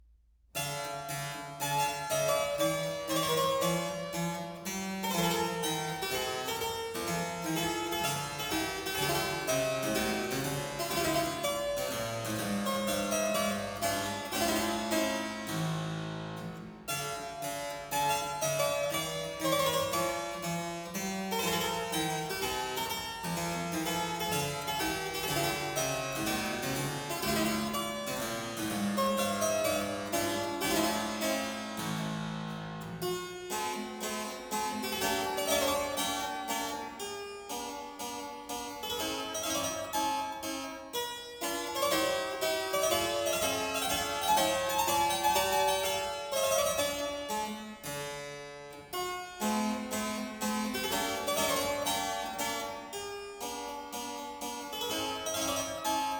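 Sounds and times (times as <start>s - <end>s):
keyboard sonata: 0.6s - 56.1s.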